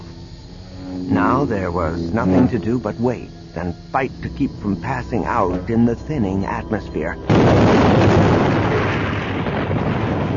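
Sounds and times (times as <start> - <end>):
speech: 1.1 - 8.2
explosion of power packs: 7.2 - 10.3.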